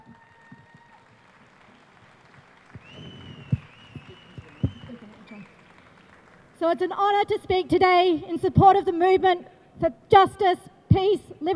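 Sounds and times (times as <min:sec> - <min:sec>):
audience applause welcoming a speaker: 0:00.0 - 0:06.6
speech: 0:06.6 - 0:11.5.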